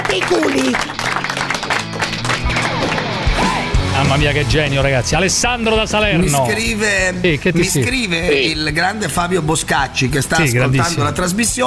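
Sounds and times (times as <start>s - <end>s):
crowd applause: 0.0s - 3.8s
speech: 0.2s - 1.2s, 4.1s - 11.6s.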